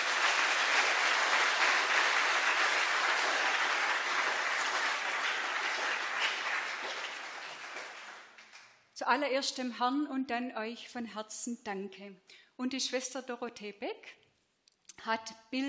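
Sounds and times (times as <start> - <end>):
audience clapping: 0.0 - 8.9
speech: 9.0 - 14.2, 15.0 - 15.6.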